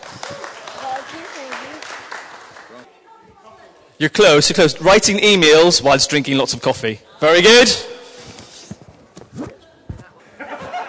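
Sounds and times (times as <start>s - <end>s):
audience applauding: 0.0s - 2.9s
speech: 4.0s - 7.9s
laughter: 10.2s - 10.8s.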